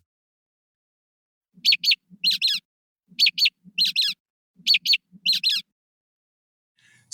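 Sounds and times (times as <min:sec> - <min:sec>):
mockingbird mimicking robin alarm call and nuthatch notes: 0:01.6 - 0:02.6, 0:03.2 - 0:05.6.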